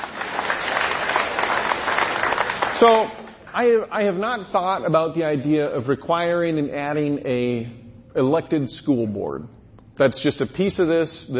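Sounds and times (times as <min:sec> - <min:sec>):
audience applause at a question-and-answer event: 0:00.0 - 0:03.4
speech: 0:02.8 - 0:11.3.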